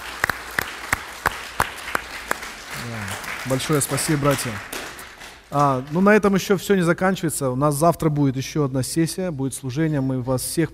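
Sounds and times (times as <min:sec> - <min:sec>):
audience applause: 0:00.0 - 0:06.2
speech: 0:02.8 - 0:04.7, 0:05.5 - 0:10.7.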